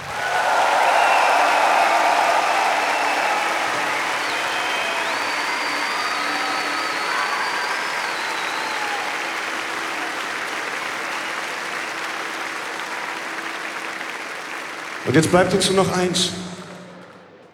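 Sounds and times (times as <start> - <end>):
audience applause: 0.0 - 17.5
speech: 15.1 - 16.5.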